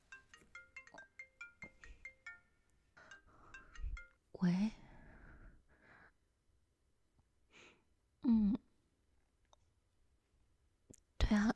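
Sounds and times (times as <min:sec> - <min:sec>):
mobile phone ringing with an electronic melody: 0:00.0 - 0:04.1
speech: 0:04.4 - 0:04.8.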